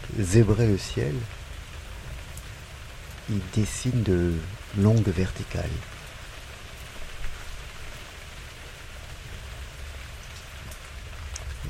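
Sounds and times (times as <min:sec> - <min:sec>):
fig leaves rustling in breeze: 0:00.0 - 0:11.6
rain falling: 0:00.0 - 0:11.6
speech: 0:00.2 - 0:01.4, 0:03.3 - 0:06.0.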